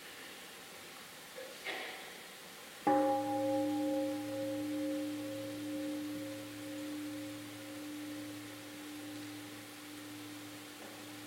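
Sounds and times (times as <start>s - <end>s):
mindfulness bell ringing: 2.9s - 11.2s.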